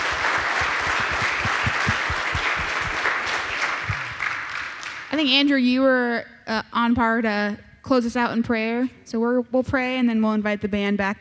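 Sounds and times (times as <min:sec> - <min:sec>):
audience applause: 0:00.0 - 0:05.1
speech: 0:05.2 - 0:11.2.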